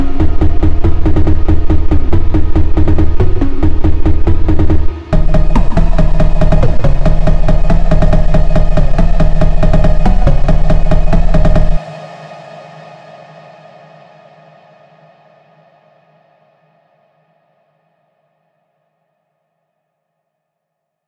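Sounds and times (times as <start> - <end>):
phonk music: 0.0 - 12.0.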